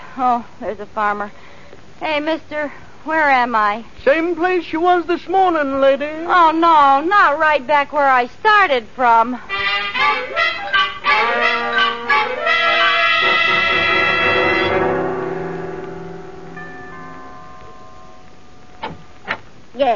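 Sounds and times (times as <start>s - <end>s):
speech: 0.2s - 10.6s, 19.8s - 19.9s
doorbell ringing: 10.5s - 19.2s.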